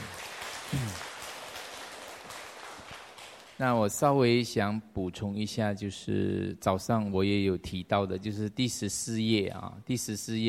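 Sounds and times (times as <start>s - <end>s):
crowd clapping: 0.0s - 3.7s
short low voice: 0.7s - 1.0s
speech: 3.6s - 10.4s.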